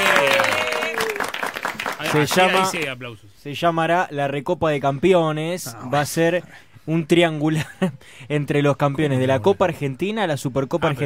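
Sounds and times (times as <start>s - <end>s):
sustained voice-like cheer: 0.0s - 2.8s
dense applause of many hands: 0.0s - 2.9s
speech: 2.1s - 11.0s.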